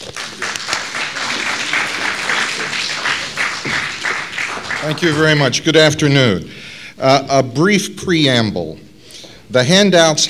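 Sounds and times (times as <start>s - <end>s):
audience applause welcoming a lecturer: 0.0s - 5.6s
speech: 4.8s - 8.8s, 9.5s - 10.2s.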